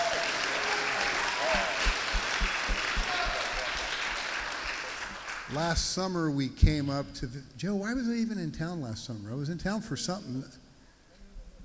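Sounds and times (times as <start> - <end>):
audience clapping: 0.0 - 5.8
speech: 5.5 - 10.6.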